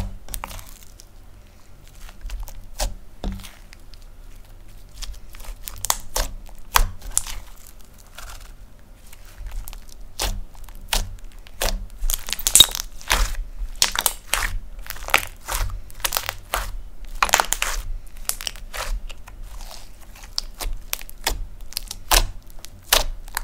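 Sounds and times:
crunchy slime poked, pressed and stretched, crackling: 0.0s - 23.4s.

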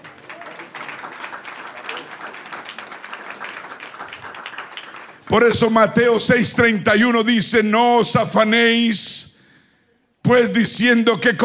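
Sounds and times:
crowd applauding in an indoor space: 0.0s - 5.7s
speech: 5.3s - 9.3s, 10.3s - 11.4s.

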